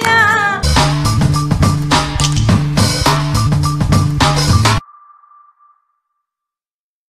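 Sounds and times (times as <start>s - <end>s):
guitar played by Turkmen girl: 0.1s - 4.8s.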